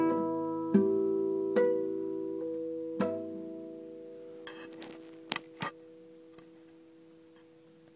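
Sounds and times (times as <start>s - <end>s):
milonga music: 0.0s - 4.8s.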